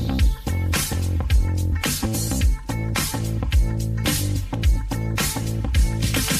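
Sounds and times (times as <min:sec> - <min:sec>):
instrumental ringtone music: 0:00.1 - 0:06.2.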